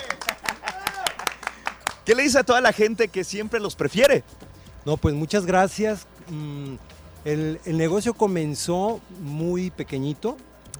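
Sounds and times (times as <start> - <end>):
applause from studio crew: 0.0 - 2.2
speech: 2.1 - 10.7.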